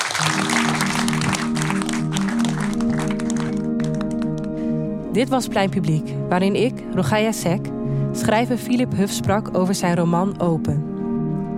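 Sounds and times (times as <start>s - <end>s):
warm audience applause: 0.0s - 4.5s
speech: 0.2s - 0.8s, 5.2s - 10.9s.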